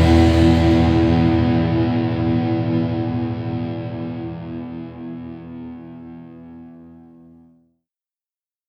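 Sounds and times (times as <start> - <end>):
instrumental music: 0.0 - 6.7.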